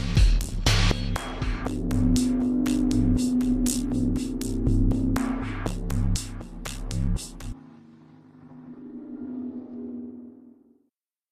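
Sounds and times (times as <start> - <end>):
dialogue music: 0.0 - 7.6.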